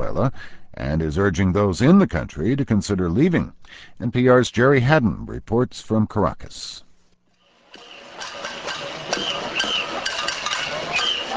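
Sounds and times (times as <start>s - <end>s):
speech: 0.2s - 6.8s
spoons and ladles banging pots and pans: 7.8s - 11.3s.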